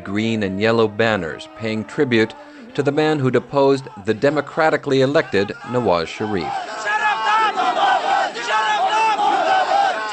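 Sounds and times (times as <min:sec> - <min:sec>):
speech: 0:00.0 - 0:06.6
crowd chanting at a political rally: 0:00.0 - 0:10.1.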